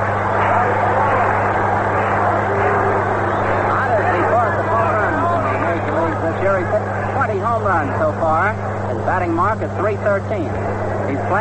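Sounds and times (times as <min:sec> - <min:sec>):
stadium crowd applauding and cheering a batter: 0:00.0 - 0:08.8
low electrical hum: 0:00.0 - 0:11.3
speech: 0:09.6 - 0:11.3.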